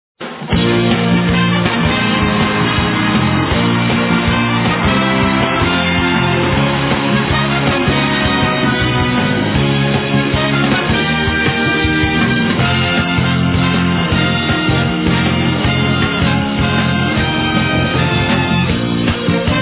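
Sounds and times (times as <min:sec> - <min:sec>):
TV pageant theme music: 0:00.4 - 0:19.6.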